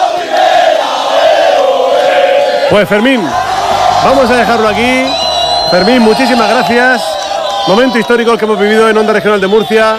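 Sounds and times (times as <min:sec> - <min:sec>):
football fans chanting in promotion celebration: 0:00.0 - 0:06.5
speech: 0:02.7 - 0:03.4, 0:04.0 - 0:09.9.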